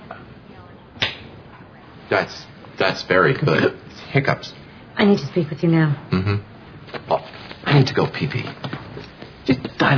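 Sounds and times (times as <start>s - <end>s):
open-hand slap on oneself: 1.0s - 1.3s
speech: 2.1s - 8.8s, 9.6s - 9.9s.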